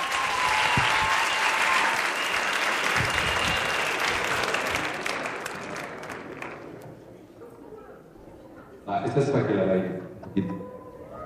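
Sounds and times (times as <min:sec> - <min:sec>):
audience applause for a band: 0:00.0 - 0:07.1
speech: 0:09.1 - 0:10.6.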